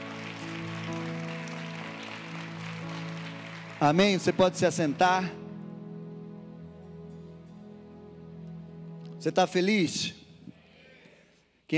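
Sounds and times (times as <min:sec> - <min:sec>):
audience applauding: 0:00.0 - 0:05.3
speech: 0:03.8 - 0:05.4, 0:09.2 - 0:10.2.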